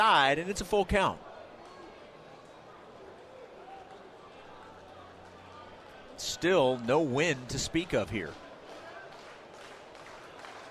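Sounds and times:
speech: 0.0s - 1.3s, 6.2s - 8.4s
stadium crowd cheering: 0.0s - 10.6s.

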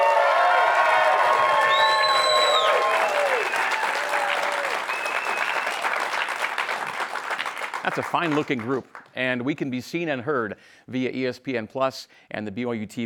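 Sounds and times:
live studio audience whoops and shouts: 0.0s - 6.2s
live studio audience clapping at a BYU men's basketball show taping: 0.0s - 9.4s
speech: 7.9s - 13.0s.

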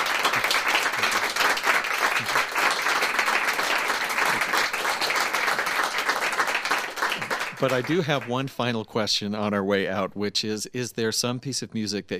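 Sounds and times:
audience applause after a live music performance: 0.0s - 8.3s
speech: 7.6s - 12.1s.

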